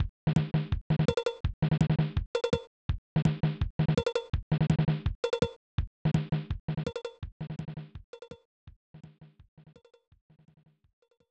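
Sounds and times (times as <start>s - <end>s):
drumbeat: 0.0s - 8.1s.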